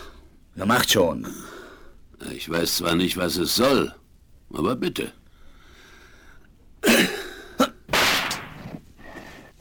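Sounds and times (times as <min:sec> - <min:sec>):
speech: 0:00.6 - 0:01.5, 0:02.2 - 0:05.2
rifle shot hitting a thrown stone: 0:07.9 - 0:08.7
sharp crack: 0:07.9 - 0:08.8.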